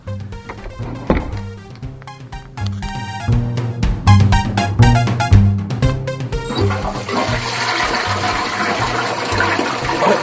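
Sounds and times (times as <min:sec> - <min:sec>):
tonal sounds: 0:00.4 - 0:08.4
apartment toilet flushing and refilling: 0:06.5 - 0:10.2.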